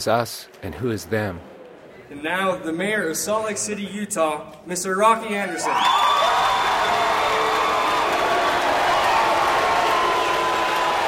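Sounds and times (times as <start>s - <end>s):
speech: 0.0s - 1.5s, 2.1s - 7.1s
crowd cheering: 5.5s - 11.0s.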